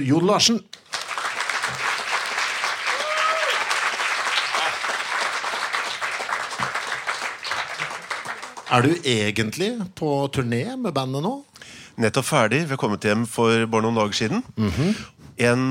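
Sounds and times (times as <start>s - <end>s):
speech: 0.0s - 0.8s, 8.7s - 15.6s
audience applauding a monthly guest at a talk event: 0.8s - 9.1s.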